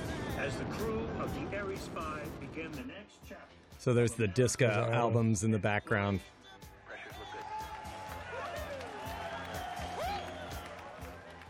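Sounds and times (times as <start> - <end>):
speech: 0.4 - 6.4
mission controllers cheering and whooping during a rocket launch: 6.8 - 11.4.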